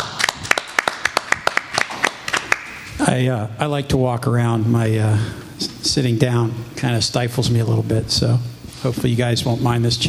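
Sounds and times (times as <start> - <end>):
audience applause: 0.0 - 2.9
speech: 3.1 - 10.0.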